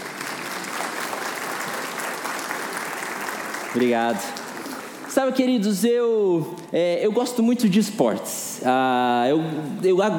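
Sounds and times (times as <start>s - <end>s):
crowd applauding: 0.0s - 5.6s
speech: 3.7s - 4.4s, 5.2s - 10.1s.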